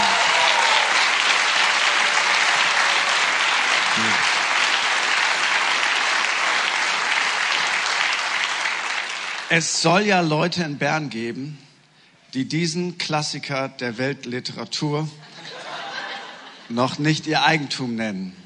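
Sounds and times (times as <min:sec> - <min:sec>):
audience applause: 0:00.0 - 0:09.7
speech: 0:09.6 - 0:11.7, 0:12.3 - 0:15.6, 0:16.7 - 0:18.4
laughter: 0:15.2 - 0:16.7.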